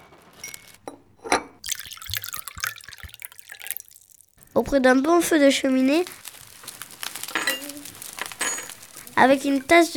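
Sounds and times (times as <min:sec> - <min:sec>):
speech: 0:04.6 - 0:06.2, 0:09.2 - 0:09.9
rain hammering on window panes: 0:04.6 - 0:09.9.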